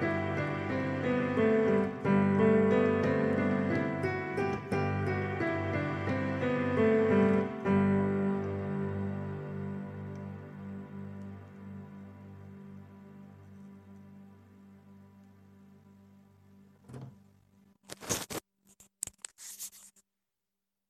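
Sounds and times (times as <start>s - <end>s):
major scale on the piano: 0.0s - 16.6s.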